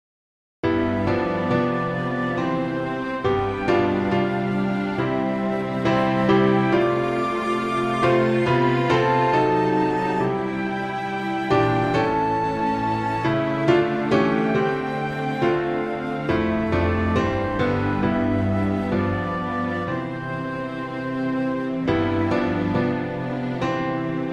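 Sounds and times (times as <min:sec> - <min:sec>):
music: 0:00.6 - 0:24.3.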